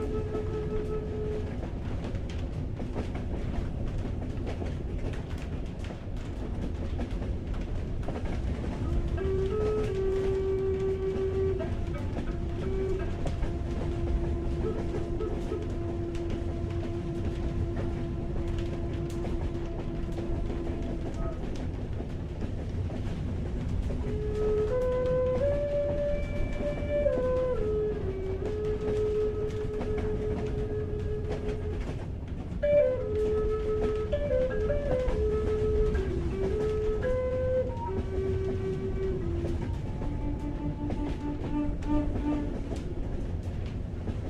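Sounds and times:
train rumble and hiss at night: 0.0s - 44.2s.

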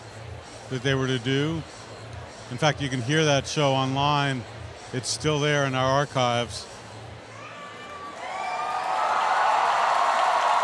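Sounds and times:
speech: 0.7s - 1.8s, 2.5s - 6.7s
concert crowd cheering as house lights go off: 7.4s - 10.6s.

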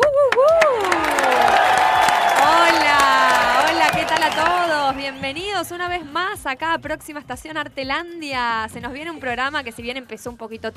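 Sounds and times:
audience applause: 0.3s - 5.8s
speech: 5.6s - 10.7s.

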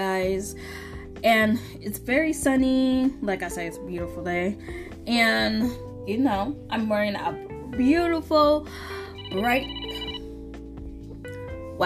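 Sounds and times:
speech: 0.0s - 9.8s
alarm ringing: 9.2s - 10.3s.

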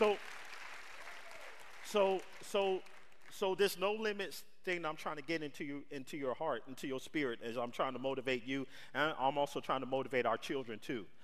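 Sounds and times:
speech: 0.0s - 0.3s, 1.9s - 11.2s
audience applause: 0.0s - 3.2s.

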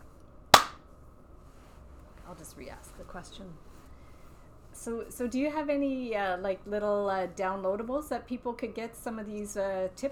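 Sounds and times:
single hand clap: 0.6s - 0.8s
speech: 2.3s - 3.8s, 4.8s - 10.1s.

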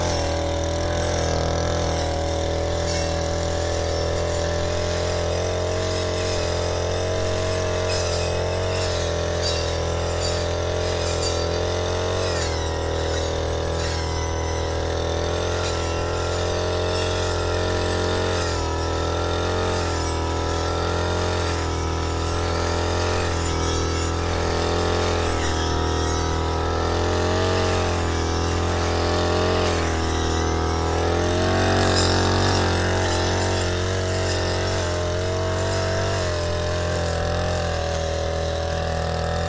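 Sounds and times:
brush cutter cutting grass: 0.0s - 39.4s.

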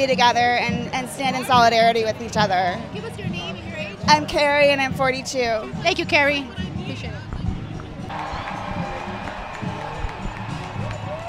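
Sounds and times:
speech: 0.0s - 7.2s
crowd cheering at a street march: 8.1s - 11.2s.

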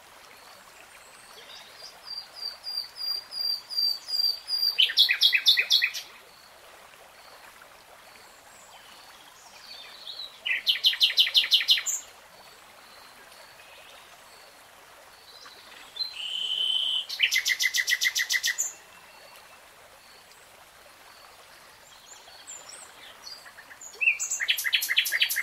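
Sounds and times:
nightingale song: 1.4s - 6.1s, 9.7s - 12.1s, 15.4s - 19.6s, 21.9s - 25.4s.

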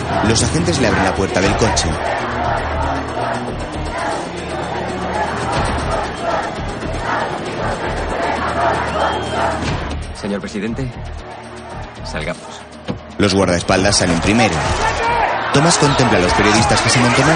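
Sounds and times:
protesters shouting anti-war slogans: 0.0s - 10.0s, 14.2s - 17.3s
speech: 0.2s - 4.6s, 5.6s - 11.2s, 12.1s - 12.6s, 13.2s - 17.3s.

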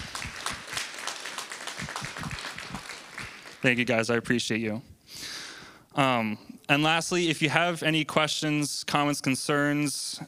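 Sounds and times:
crowd applauding: 0.0s - 4.0s
speech: 3.6s - 4.9s, 6.0s - 10.2s.

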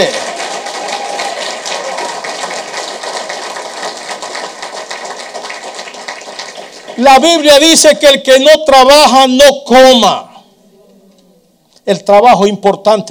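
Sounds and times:
loud sustained crowd applause: 0.0s - 7.6s
speech: 7.0s - 10.3s, 11.9s - 13.0s.

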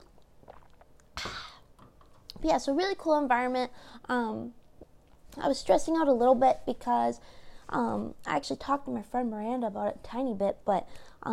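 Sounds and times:
wet mouth clicks: 0.0s - 2.4s
person slurping a thick green smoothie: 0.1s - 1.7s
speech: 2.4s - 4.6s, 5.3s - 11.3s.

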